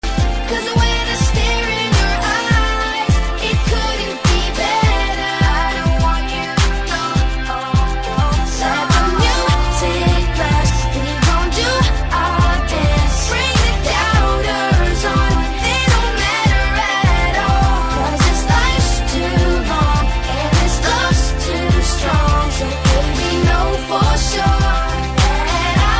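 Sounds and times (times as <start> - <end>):
ringtone: 0.0 - 25.9.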